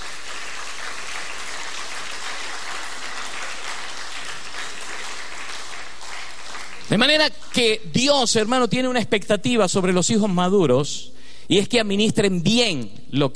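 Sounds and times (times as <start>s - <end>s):
audience applauding: 0.0s - 7.6s
speech: 6.9s - 13.3s.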